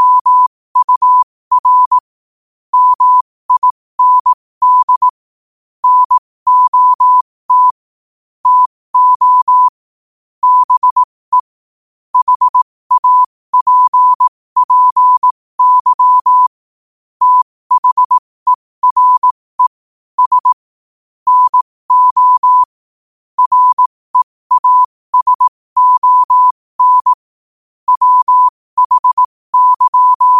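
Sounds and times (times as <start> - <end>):
morse code at 5 wpm: 0.0 - 2.1, 2.7 - 5.2, 5.8 - 7.8, 8.4 - 9.8, 10.4 - 11.5, 12.2 - 16.5, 17.2 - 18.2, 18.8 - 20.6, 21.3 - 22.8, 23.4 - 27.3, 27.9 - 30.3.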